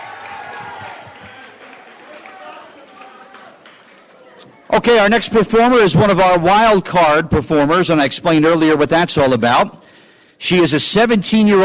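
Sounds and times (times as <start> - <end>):
crowd applause: 0.0 - 4.9
speech: 4.7 - 9.8, 10.4 - 11.6.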